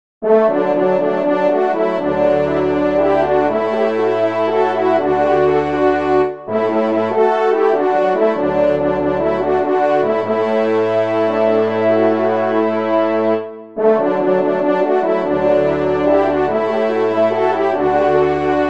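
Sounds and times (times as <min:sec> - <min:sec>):
trumpet playing a hymn: 0:00.2 - 0:18.6.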